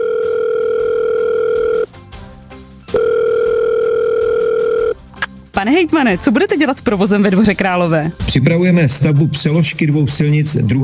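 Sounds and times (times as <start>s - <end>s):
steady loud telephone tone: 0.0s - 1.9s, 2.9s - 5.0s
speech: 5.6s - 10.8s.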